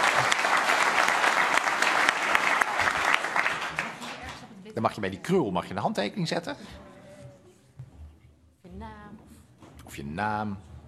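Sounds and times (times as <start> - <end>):
group applause: 0.0 - 4.5
speech: 4.8 - 6.9, 10.0 - 10.7.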